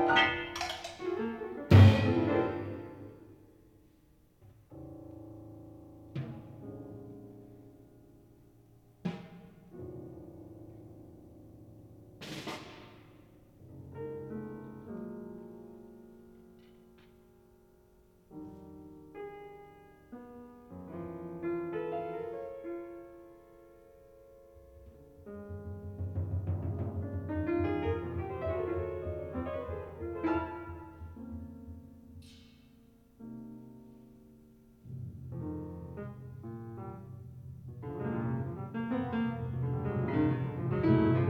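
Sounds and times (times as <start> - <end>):
percussion in a duet with piano: 0.0 - 3.4, 12.2 - 13.3, 24.6 - 32.8
piano in a duet with percussion: 0.0 - 41.2.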